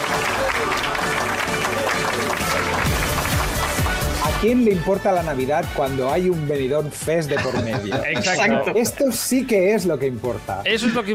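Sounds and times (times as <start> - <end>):
audience applause: 0.0 - 4.4
speech: 4.4 - 11.1
laughter: 7.2 - 9.0.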